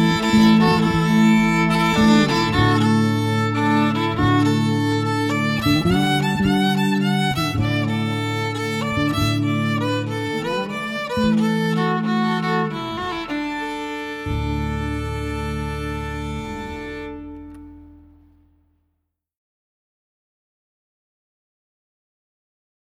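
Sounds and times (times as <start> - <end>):
music interlude: 0.0 - 18.1.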